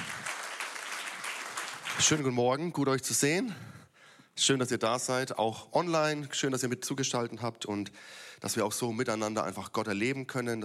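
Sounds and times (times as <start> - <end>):
audience applause: 0.0 - 2.2
speech: 2.0 - 3.8, 4.4 - 10.6.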